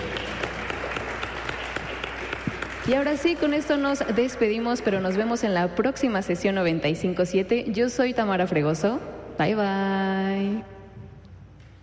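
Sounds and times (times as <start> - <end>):
audience applauding for the production crew at a live radio session: 0.0 - 4.3
speech: 2.9 - 10.8.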